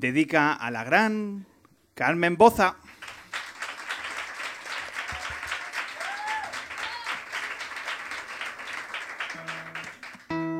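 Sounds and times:
speech: 0.0 - 3.0
audience applause at Café La Palma: 2.9 - 10.4.

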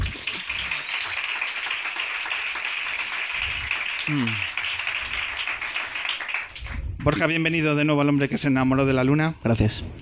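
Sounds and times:
audience applause: 0.0 - 7.5
speech: 4.1 - 4.5, 7.1 - 10.0.

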